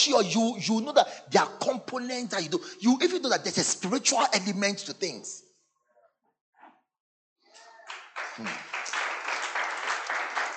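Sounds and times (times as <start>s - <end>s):
speech: 0.0s - 5.5s, 8.4s - 8.7s
audience clapping: 7.6s - 10.5s.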